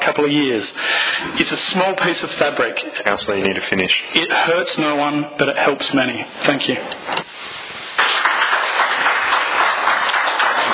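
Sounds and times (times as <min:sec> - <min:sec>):
speech: 0:00.0 - 0:07.2
applause in council chamber: 0:08.0 - 0:10.7.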